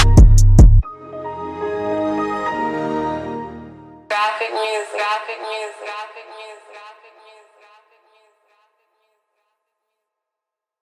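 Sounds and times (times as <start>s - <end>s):
trap remix music: 0.0s - 0.8s, 4.1s - 7.8s.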